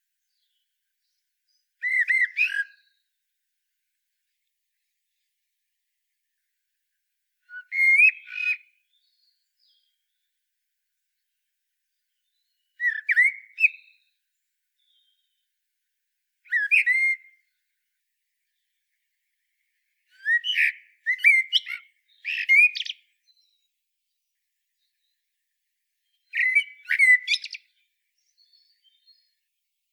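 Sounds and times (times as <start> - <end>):
common blackbird singing: 0.2 - 3.0, 7.5 - 10.2, 12.0 - 14.2, 14.8 - 15.4, 16.5 - 17.6, 20.1 - 24.2, 26.0 - 29.4.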